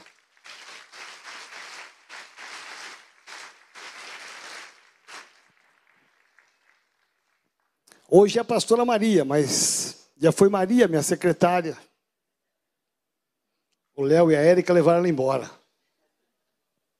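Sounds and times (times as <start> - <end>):
audience applause: 0.0 - 7.7
speech: 8.1 - 11.9, 14.0 - 15.6.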